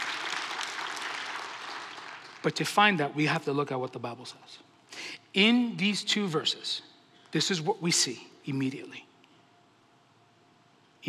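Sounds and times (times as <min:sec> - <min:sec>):
audience clapping: 0:00.0 - 0:02.8
speech: 0:02.4 - 0:04.7, 0:05.3 - 0:09.1.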